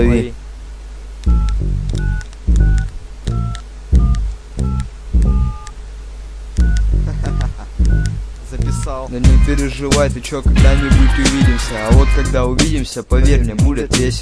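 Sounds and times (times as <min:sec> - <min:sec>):
telephone keypad touch-tone beeps: 0:01.3 - 0:05.7, 0:06.6 - 0:08.2
speech: 0:09.1 - 0:14.1.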